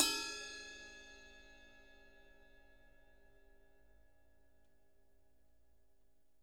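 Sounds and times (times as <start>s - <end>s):
ride cymbal bell: 0.0s - 1.8s.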